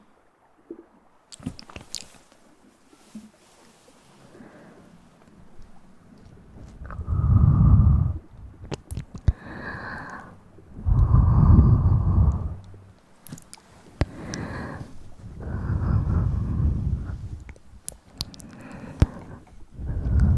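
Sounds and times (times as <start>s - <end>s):
breathy mouth sounds: 1.3s - 2.2s, 5.7s - 20.3s.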